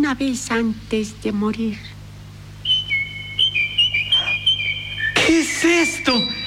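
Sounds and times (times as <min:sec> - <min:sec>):
speech: 0:00.0 - 0:02.0, 0:05.3 - 0:06.4
steady low hum: 0:00.0 - 0:06.4
nightingale singing from a window: 0:02.6 - 0:06.4.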